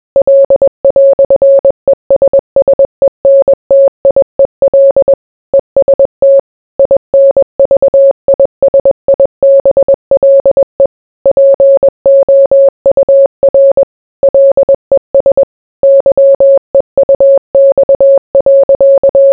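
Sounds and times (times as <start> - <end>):
morse code beeps: 0.2 - 19.3.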